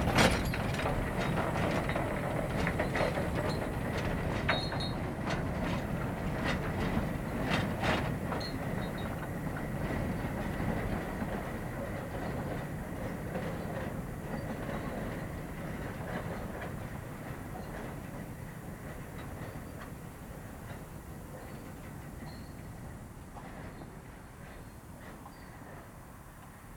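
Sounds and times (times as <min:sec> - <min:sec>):
crowded train: 0:00.0 - 0:26.7.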